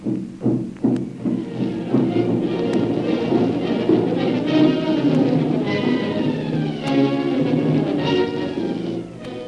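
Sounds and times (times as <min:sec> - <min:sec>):
jungle tom-tom war drums pounding: 0:00.0 - 0:09.4
dense sustained wash of layered tonal sound: 0:01.3 - 0:09.4.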